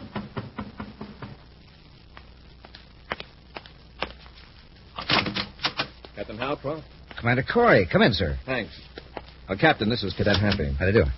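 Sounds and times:
knocking on a door: 0:00.0 - 0:01.4
speech: 0:06.2 - 0:11.1.

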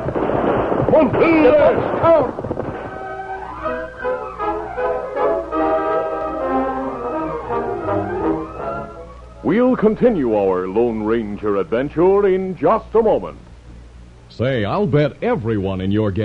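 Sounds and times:
gunfire from outlaws shooting: 0:00.0 - 0:05.6
speech: 0:01.0 - 0:02.4, 0:09.4 - 0:13.5, 0:14.3 - 0:16.2
orchestral music cue: 0:02.8 - 0:10.0.

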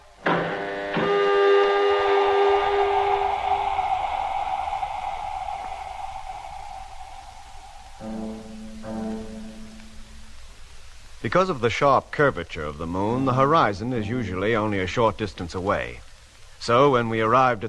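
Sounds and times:
airlock opening on a lunar craft: 0:00.0 - 0:10.8
speech: 0:11.2 - 0:16.0, 0:16.6 - 0:17.6.

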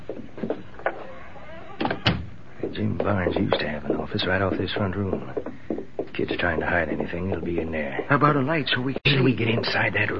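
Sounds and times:
door being shut: 0:01.7 - 0:02.4
speech: 0:02.8 - 0:05.5, 0:06.2 - 0:10.1.

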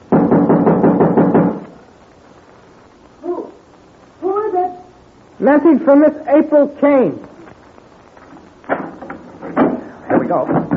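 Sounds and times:
knocking on a door: 0:00.1 - 0:01.6, 0:09.6 - 0:10.7
speech: 0:05.4 - 0:07.3, 0:10.3 - 0:10.6.

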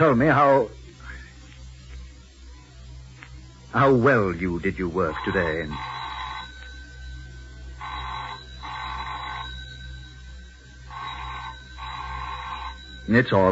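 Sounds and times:
speech: 0:00.0 - 0:00.8, 0:03.7 - 0:05.9, 0:13.1 - 0:13.5
telephone ringing: 0:04.9 - 0:13.5.

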